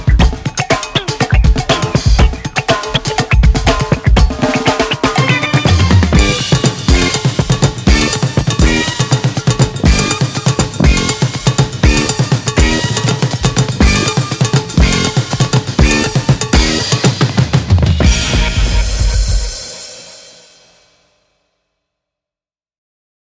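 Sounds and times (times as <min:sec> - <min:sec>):
breakbeat drums: 0:00.0 - 0:20.8
horn section: 0:05.0 - 0:17.0, 0:18.0 - 0:19.8.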